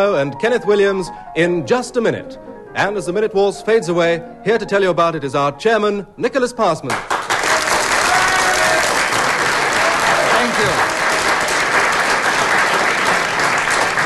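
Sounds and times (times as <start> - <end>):
speech: 0.0 - 7.2
audience applauding the chairman of Just a Minute: 6.9 - 14.0.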